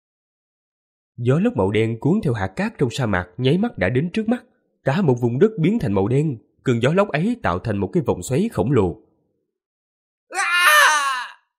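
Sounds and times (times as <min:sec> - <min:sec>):
speech: 0:01.2 - 0:09.0
agonized scream: 0:10.3 - 0:11.5.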